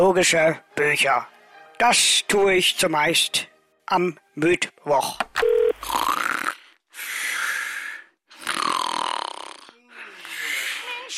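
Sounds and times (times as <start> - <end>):
speech: 0.0 - 6.2
person snoring on a phone line: 5.8 - 11.1.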